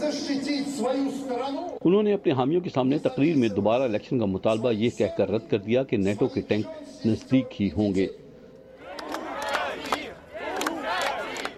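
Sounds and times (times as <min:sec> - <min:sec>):
speech: 0:00.1 - 0:08.2
crowd of protesters chanting a slogan in unison: 0:08.8 - 0:11.5.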